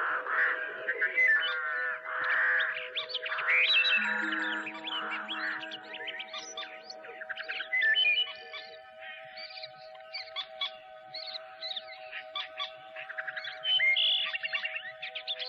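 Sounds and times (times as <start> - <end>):
birds singing: 0.0 - 15.4.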